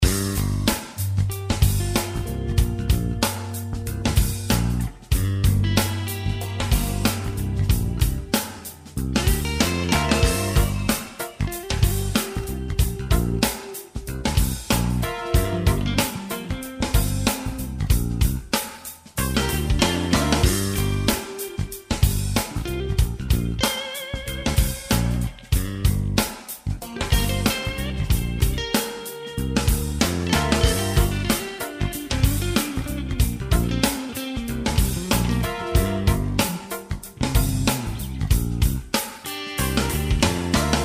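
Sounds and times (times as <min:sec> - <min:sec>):
guitar: 0:00.0 - 0:40.8
hip hop jam: 0:00.0 - 0:40.8.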